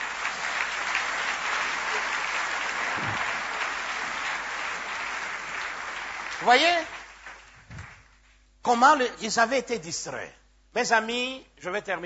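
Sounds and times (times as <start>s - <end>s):
congregation applauding during a church service: 0.0s - 8.4s
speech: 6.4s - 7.0s, 8.6s - 12.0s.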